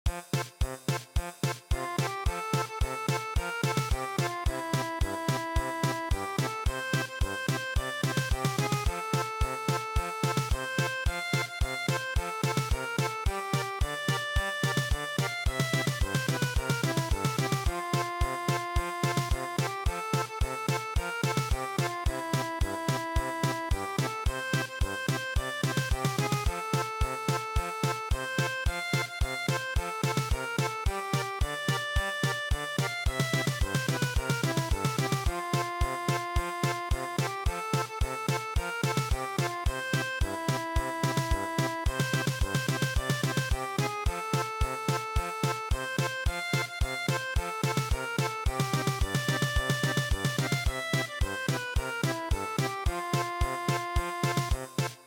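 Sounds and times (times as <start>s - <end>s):
German polka in MIDI: 0.1s - 55.0s.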